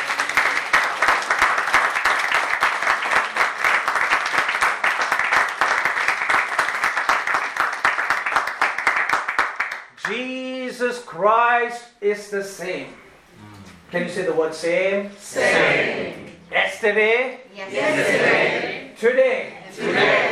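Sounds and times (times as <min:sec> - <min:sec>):
large crowd applauding: 0:00.0 - 0:09.9
speech: 0:11.1 - 0:13.0, 0:13.9 - 0:20.2.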